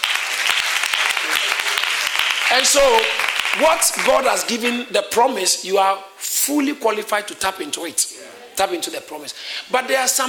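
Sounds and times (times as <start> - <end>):
people clapping: 0.0 - 4.5
speech: 2.5 - 10.2.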